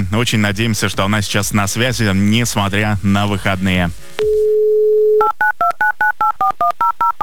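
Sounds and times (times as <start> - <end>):
speech: 0.0 - 4.4
phone number dialing: 4.2 - 7.2.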